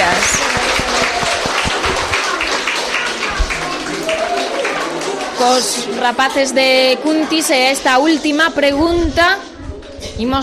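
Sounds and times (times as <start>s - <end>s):
crowd applauding: 0.0s - 5.9s
speech: 5.4s - 9.5s, 10.2s - 10.4s.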